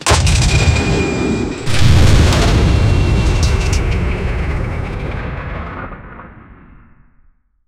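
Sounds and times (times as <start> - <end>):
RPG rocket launcher firing a round: 0.0 - 7.3.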